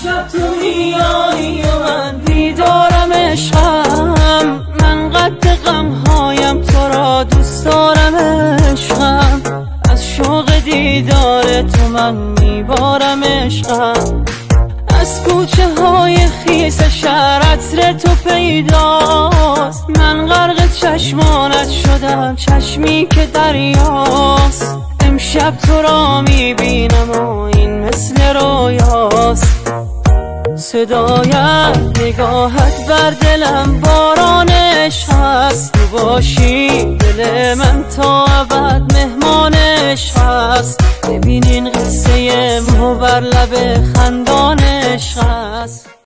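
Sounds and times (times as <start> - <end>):
Iranian remix track: 0.0 - 46.0.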